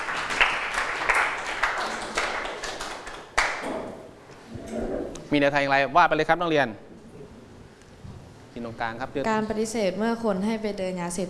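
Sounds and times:
classroom applause for a classmate: 0:00.0 - 0:04.0
speech: 0:05.3 - 0:06.9, 0:08.6 - 0:11.2.

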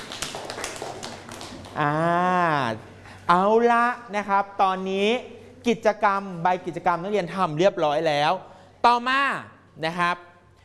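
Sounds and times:
classroom students clapping for a classmate: 0:00.0 - 0:01.9
speech: 0:01.8 - 0:10.3.

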